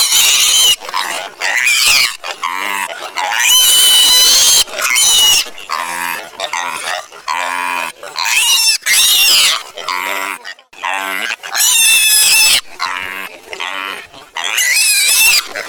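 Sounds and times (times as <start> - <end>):
piglet squealing: 0.0 - 15.6.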